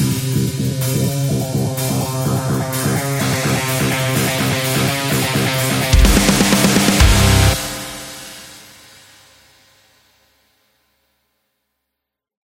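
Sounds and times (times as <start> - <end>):
metal music: 0.0 - 8.8.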